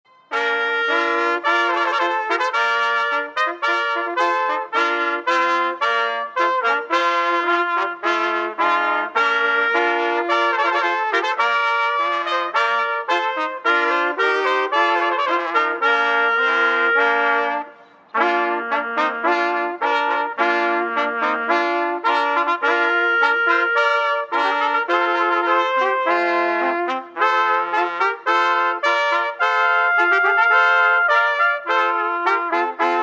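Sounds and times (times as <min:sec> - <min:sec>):
trumpet piece: 0:00.1 - 0:33.0.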